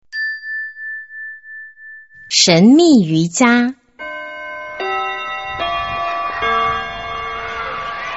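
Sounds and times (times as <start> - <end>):
speech: 2.3 - 3.8
school bell ringing for end of class: 4.0 - 8.1.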